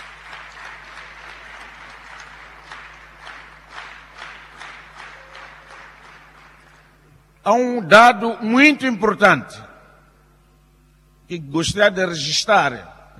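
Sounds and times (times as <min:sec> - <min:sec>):
audience applause: 0:00.0 - 0:07.0
speech: 0:07.4 - 0:09.6, 0:11.3 - 0:13.1.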